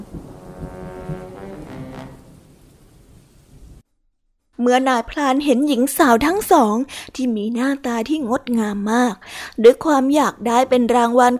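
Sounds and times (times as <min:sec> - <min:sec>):
deep rumbling thunder: 0:00.0 - 0:03.8
steady roar of wind with a low droning tone: 0:00.0 - 0:03.8
speech: 0:04.6 - 0:11.3.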